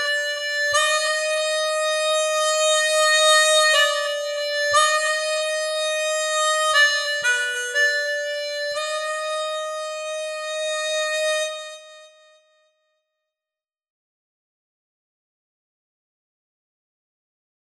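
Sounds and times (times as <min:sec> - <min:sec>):
dry chromatic harmonica: 0:00.0 - 0:12.4.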